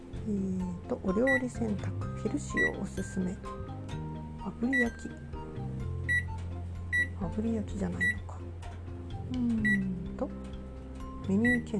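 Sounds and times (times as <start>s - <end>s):
speech: 0.2s - 3.7s, 4.4s - 5.3s, 7.2s - 8.2s, 9.3s - 10.4s, 11.2s - 11.7s
microwave oven button beeps: 1.2s - 1.6s, 2.5s - 3.1s, 4.6s - 5.1s, 6.0s - 7.2s, 8.0s - 8.2s, 11.2s - 11.7s.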